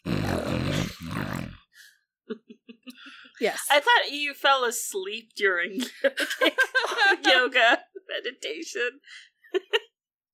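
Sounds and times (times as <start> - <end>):
voice imitating a pug's snorting grunt: 0.0 - 1.7
speech: 3.4 - 9.3
laughter: 5.8 - 7.8.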